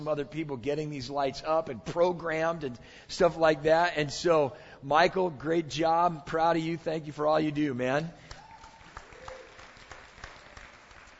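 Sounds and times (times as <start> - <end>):
speech: 0.0 - 8.3
half-hearted round of applause from a group: 8.2 - 11.1.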